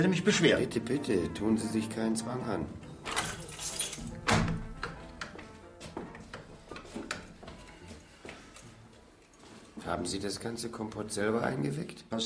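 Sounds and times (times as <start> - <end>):
speech: 0.0 - 3.2, 9.9 - 12.2
keys rattling in a cellar door lock: 3.0 - 4.8
heavy cellar door thunk: 4.0 - 5.0.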